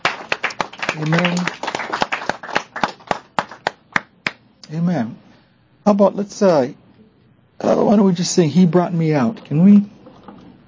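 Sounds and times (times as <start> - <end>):
church congregation clapping as an offering to the Lord: 0.0 - 4.4
speech: 1.0 - 1.6, 4.7 - 5.2, 5.8 - 6.8, 7.6 - 9.9.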